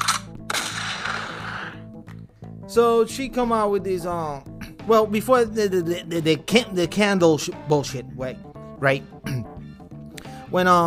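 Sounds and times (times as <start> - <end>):
shotgun blast sound effect from a soundboard button: 0.0 - 1.8
speech: 2.7 - 9.4, 10.5 - 10.8.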